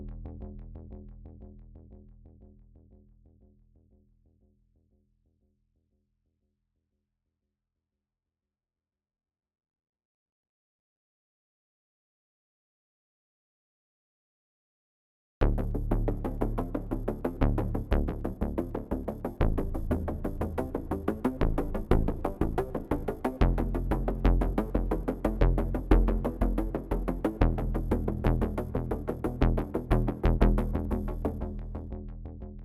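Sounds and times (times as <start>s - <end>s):
bass: 0.0s - 4.5s, 15.4s - 32.6s.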